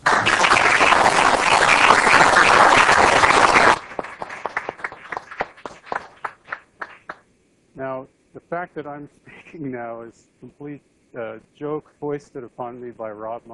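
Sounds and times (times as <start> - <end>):
audience applause: 0.0 - 7.2
speech: 8.6 - 13.5.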